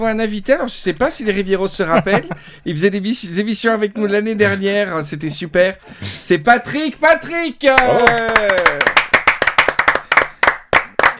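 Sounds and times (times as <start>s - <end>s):
speech: 0.0s - 8.9s
laughter: 1.9s - 2.6s
small applause: 7.7s - 11.1s.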